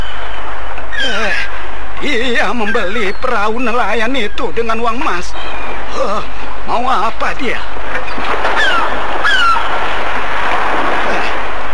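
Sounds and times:
high falling cries: 0.0s - 6.5s, 7.4s - 10.4s
sea waves washing around a small sampan on the open sea: 0.0s - 11.7s
speech: 2.0s - 8.7s.

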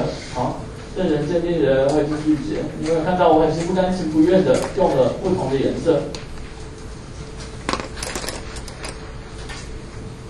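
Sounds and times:
speech: 1.0s - 6.2s
audience taking out pens to write: 7.7s - 9.6s.

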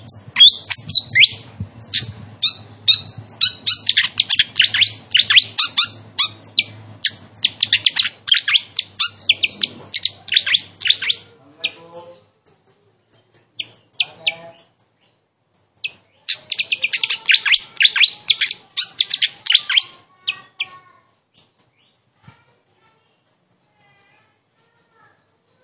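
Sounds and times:
flycatcher giving sharp high notes: 0.0s - 12.2s, 15.8s - 20.8s.

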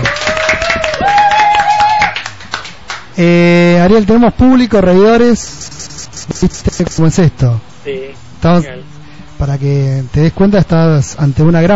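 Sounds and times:
applause: 0.0s - 3.2s
speech: 3.2s - 11.7s.

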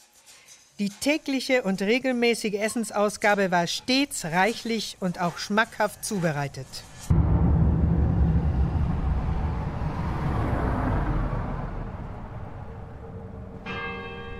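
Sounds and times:
speech: 0.8s - 7.2s
car driving: 7.1s - 14.3s.

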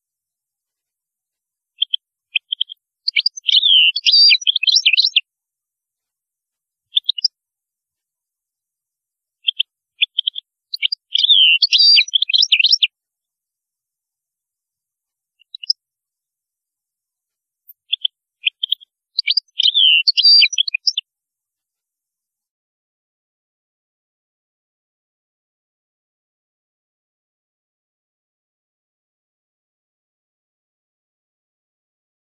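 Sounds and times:
European goldfinch twittering: 1.8s - 5.2s, 6.9s - 7.3s, 9.4s - 12.9s, 15.4s - 15.8s, 17.8s - 21.0s.

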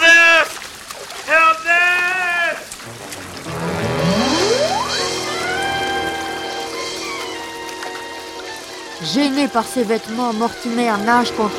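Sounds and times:
waterfall roaring: 1.3s - 9.5s
sustained musical notes: 2.8s - 11.5s
rising whistling tone: 4.0s - 8.1s
speech: 9.1s - 11.5s.

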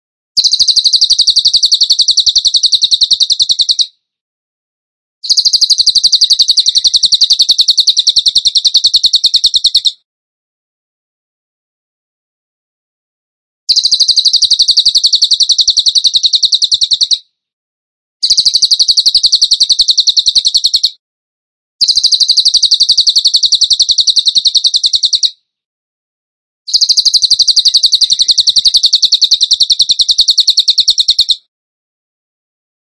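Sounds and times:
bird song high rapid trill: 0.4s - 3.9s, 5.2s - 10.0s, 13.7s - 17.2s, 18.2s - 21.0s, 21.8s - 25.4s, 26.7s - 31.5s.

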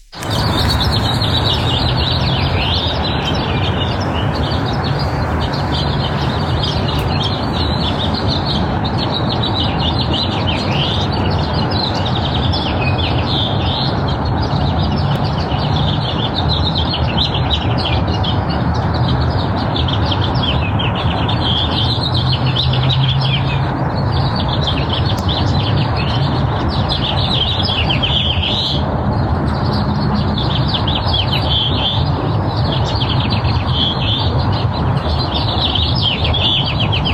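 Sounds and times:
birdsong in Los Angeles at about six in the morning: 0.0s - 37.1s.

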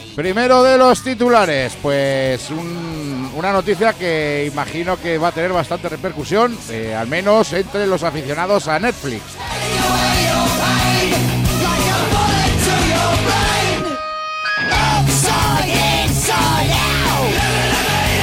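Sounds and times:
speech: 0.2s - 10.5s
heavy metal screaming vocals: 11.8s - 18.2s.

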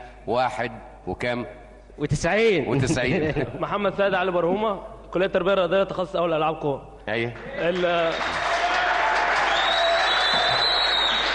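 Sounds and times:
speech: 0.2s - 8.5s
applause: 7.3s - 11.3s.

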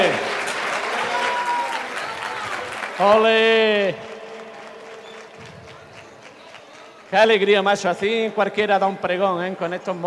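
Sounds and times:
audience applause: 0.0s - 7.4s
speech: 3.0s - 4.1s, 7.1s - 10.0s.

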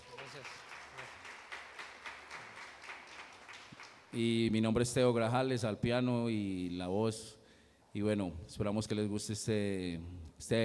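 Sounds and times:
audience applause: 0.0s - 4.2s
speech: 0.3s - 1.1s, 4.1s - 10.6s.

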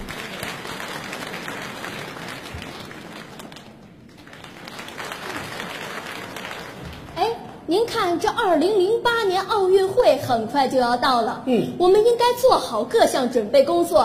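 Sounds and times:
audience applause: 0.0s - 7.2s
speech: 7.7s - 14.0s.

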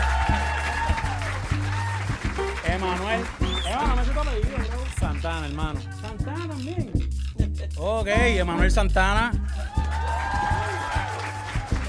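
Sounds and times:
audience applause: 0.0s - 5.8s, 9.6s - 11.8s
speech: 2.7s - 7.0s, 7.8s - 9.6s.

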